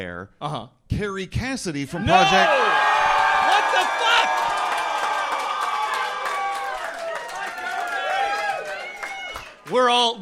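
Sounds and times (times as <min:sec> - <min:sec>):
speech: 0:00.0 - 0:02.9, 0:09.7 - 0:10.2
crowd cheering: 0:01.9 - 0:09.8.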